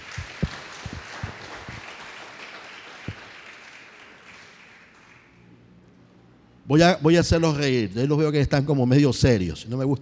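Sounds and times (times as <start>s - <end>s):
audience applause: 0.0s - 5.3s
speech: 6.7s - 9.9s.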